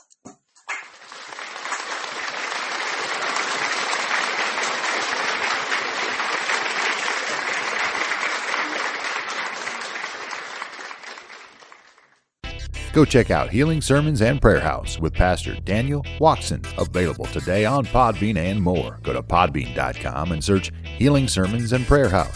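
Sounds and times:
audience applauding: 0.7s - 12.4s
speech: 13.0s - 22.3s.

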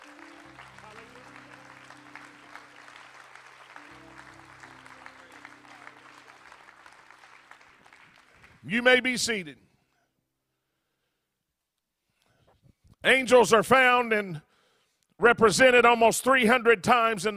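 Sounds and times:
audience clapping hands in praise: 0.0s - 9.3s
sustained organ or keyboard chords: 0.0s - 9.5s
speech: 8.7s - 9.7s, 13.1s - 14.5s, 15.2s - 17.3s.

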